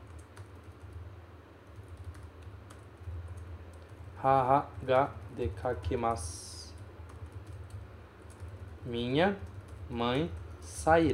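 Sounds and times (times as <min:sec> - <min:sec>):
typing a sentence on a computer keyboard: 0:00.0 - 0:01.0, 0:01.6 - 0:04.1, 0:06.7 - 0:08.8, 0:09.4 - 0:10.6
speech: 0:04.2 - 0:06.6, 0:08.9 - 0:11.1.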